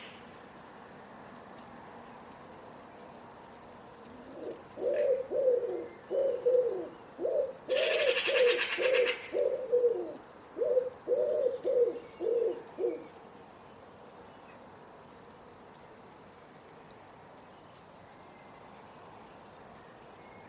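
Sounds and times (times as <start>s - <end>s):
Common Wood Pigeon cooing: 4.0s - 13.1s.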